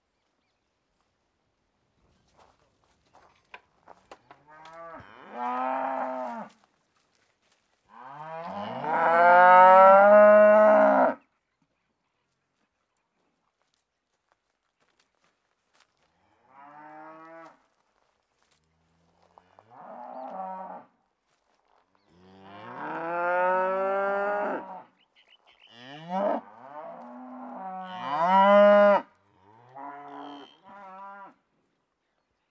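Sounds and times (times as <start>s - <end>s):
cattle in countryside in Uruguay by day: 4.1s - 7.3s, 7.9s - 11.2s, 15.7s - 31.5s.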